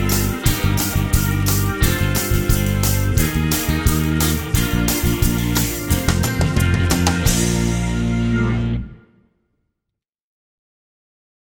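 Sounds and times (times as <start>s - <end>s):
strings playing a B flat major scale: 0.0s - 9.1s.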